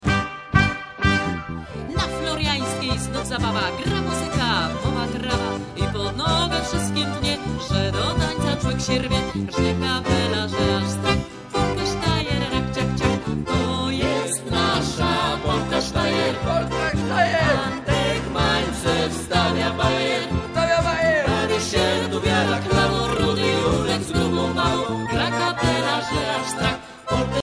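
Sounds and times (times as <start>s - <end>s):
polka sztajer dance music: 0.0s - 27.4s.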